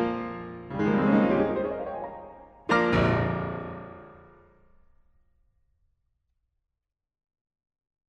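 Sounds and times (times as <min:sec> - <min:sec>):
prelude: 0:00.0 - 0:04.2.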